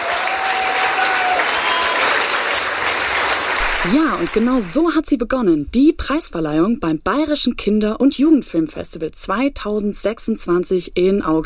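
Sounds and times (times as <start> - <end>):
audience applause: 0.0 - 4.7
speech: 3.8 - 11.4.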